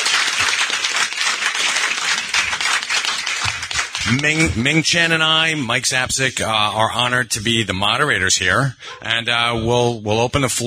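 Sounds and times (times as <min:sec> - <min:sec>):
audience applause at a convention panel: 0:00.0 - 0:05.2
speech: 0:04.1 - 0:10.6.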